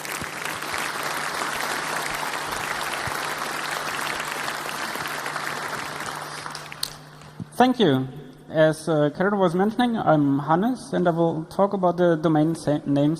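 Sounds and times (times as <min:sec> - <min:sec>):
audience applause: 0:00.0 - 0:07.3
speech: 0:07.6 - 0:13.1.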